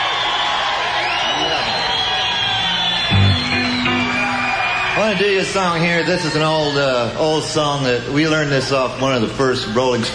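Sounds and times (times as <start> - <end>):
lively crowd cheering: 0.0 - 10.1
whistles: 0.1 - 5.5
speech: 5.1 - 10.1.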